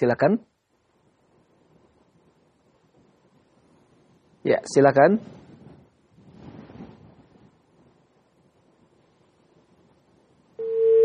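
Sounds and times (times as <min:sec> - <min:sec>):
speech: 0:00.0 - 0:00.6, 0:04.4 - 0:05.4
faint hissy telephone line noise: 0:10.6 - 0:11.0.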